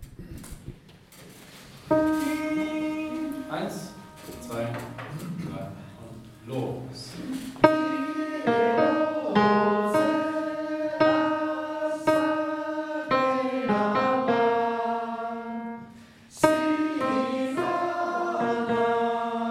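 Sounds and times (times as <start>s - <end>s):
tenor singing: 1.9s - 5.0s, 7.3s - 19.4s.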